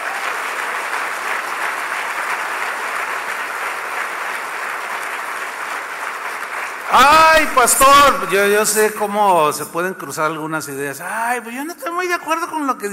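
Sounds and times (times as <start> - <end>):
audience applauding: 0.0 - 8.5
speech: 6.9 - 12.9.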